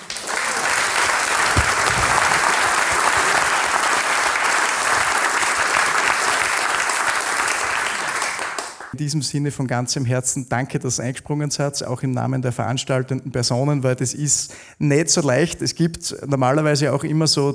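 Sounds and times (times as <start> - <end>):
audience applause: 0.0 - 9.0
speech: 9.0 - 17.5.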